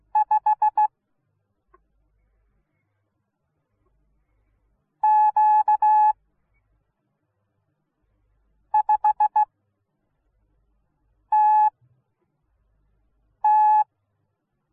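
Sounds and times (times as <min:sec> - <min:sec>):
morse code beeps: 0:00.1 - 0:00.9, 0:05.0 - 0:06.1, 0:08.8 - 0:09.4, 0:11.3 - 0:11.7, 0:13.4 - 0:13.8.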